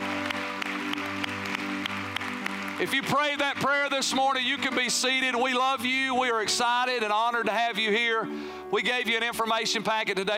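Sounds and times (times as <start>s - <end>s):
audience applause: 0.0s - 5.2s
speech: 2.8s - 10.3s.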